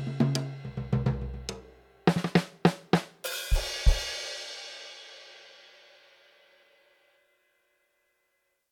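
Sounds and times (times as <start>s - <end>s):
EFNOTE Mini 6 drum kit with Mellow Kit: 0.0s - 6.2s.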